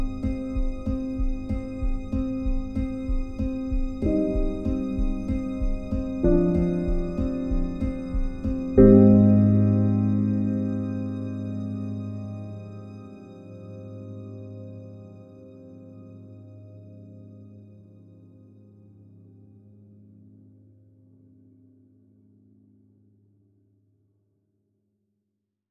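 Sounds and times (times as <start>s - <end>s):
minimal musical motif: 0.0s - 15.1s.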